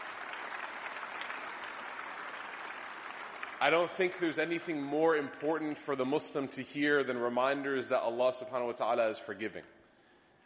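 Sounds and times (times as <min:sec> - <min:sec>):
room full of people clapping: 0:00.0 - 0:05.1
speech: 0:03.6 - 0:09.8.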